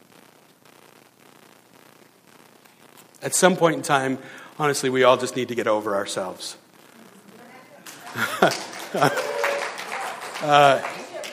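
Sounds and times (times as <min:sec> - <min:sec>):
speech: 0:03.2 - 0:06.6, 0:08.4 - 0:09.2, 0:10.4 - 0:11.0
crowd clapping: 0:07.8 - 0:11.3
scattered voices and laughter: 0:07.9 - 0:09.4.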